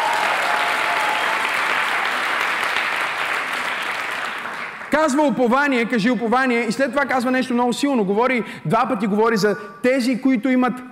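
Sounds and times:
audience applause: 0:00.0 - 0:04.9
speech: 0:05.0 - 0:10.9.

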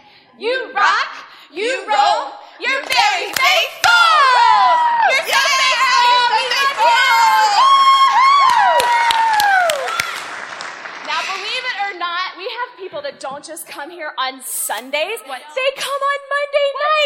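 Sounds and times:
speech: 0:00.4 - 0:02.4, 0:13.5 - 0:16.4
audience of adults and children cheering in unison: 0:02.8 - 0:11.9.

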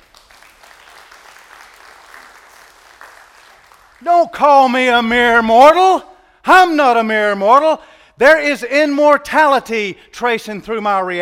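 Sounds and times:
audience applause: 0:00.0 - 0:04.0
speech: 0:04.0 - 0:11.1.

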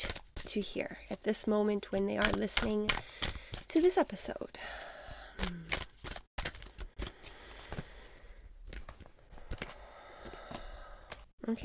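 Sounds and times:
tarot cards being shuffled by hand: 0:00.0 - 0:04.0, 0:05.4 - 0:08.0, 0:08.7 - 0:11.3
speech: 0:00.0 - 0:05.6, 0:11.5 - 0:11.6.

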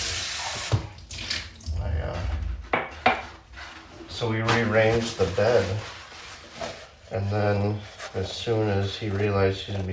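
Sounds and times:
water running from a tap while something dirty is washed: 0:00.0 - 0:02.1
speech: 0:04.2 - 0:06.0, 0:07.1 - 0:09.9.

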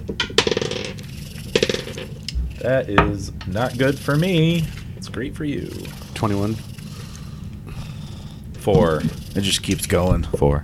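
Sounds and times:
dice rolling on a hard tabletop: 0:00.1 - 0:03.9
speech: 0:02.6 - 0:06.7, 0:08.6 - 0:10.6.

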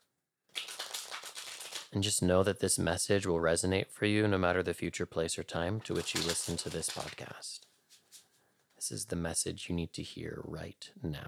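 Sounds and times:
tarot cards being shuffled: 0:00.5 - 0:02.0, 0:05.9 - 0:07.3
speech: 0:01.9 - 0:07.7, 0:08.9 - 0:11.2.

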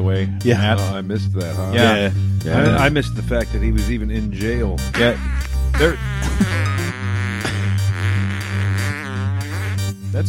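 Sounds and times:
speech: 0:00.1 - 0:06.7
fart played over a speakerphone: 0:05.0 - 0:10.0.

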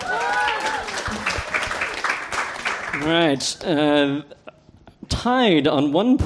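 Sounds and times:
audience round of applause: 0:00.0 - 0:03.4
speech: 0:03.0 - 0:04.4, 0:05.2 - 0:06.2.

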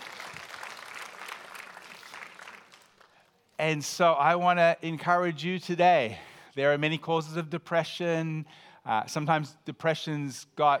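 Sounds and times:
audience clapping: 0:00.0 - 0:03.5
speech: 0:03.6 - 0:10.7.

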